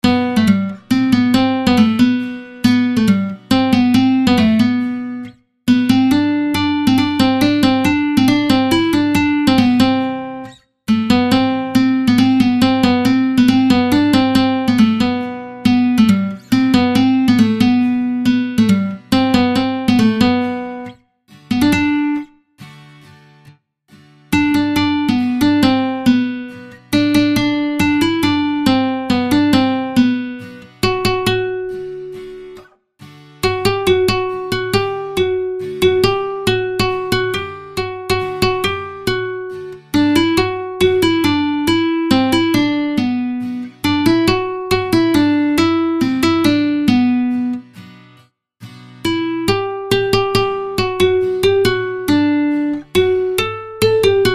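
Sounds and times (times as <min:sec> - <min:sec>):
guitar: 0:00.0 - 0:54.3.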